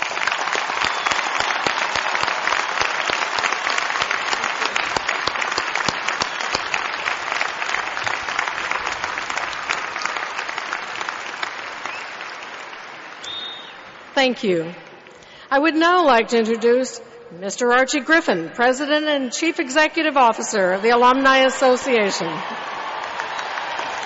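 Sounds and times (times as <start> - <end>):
audience applause at a commencement ceremony: 0.0 - 14.2, 21.3 - 24.0
speech: 14.2 - 14.8, 15.5 - 22.6.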